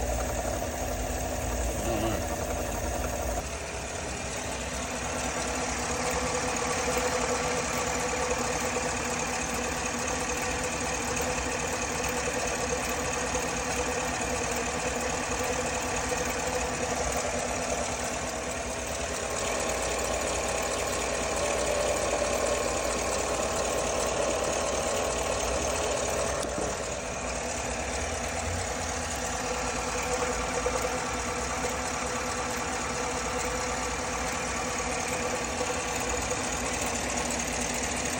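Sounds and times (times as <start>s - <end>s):
engine idling: 0.0s - 38.1s.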